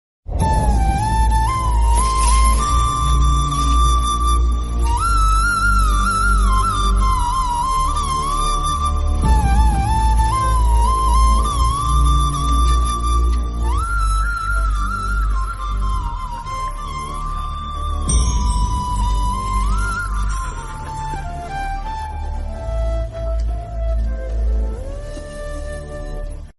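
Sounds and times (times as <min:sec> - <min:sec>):
flute ringtone: 0:00.4 - 0:26.5.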